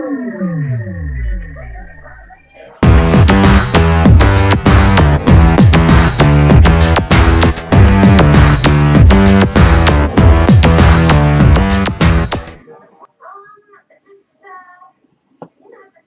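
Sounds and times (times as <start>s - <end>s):
techno music: 0.4s - 12.6s.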